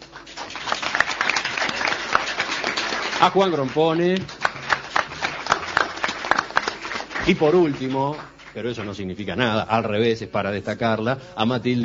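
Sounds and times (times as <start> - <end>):
audience applause in a hall welcoming speakers: 0.0 - 9.4
speech: 3.2 - 4.4, 7.2 - 11.8.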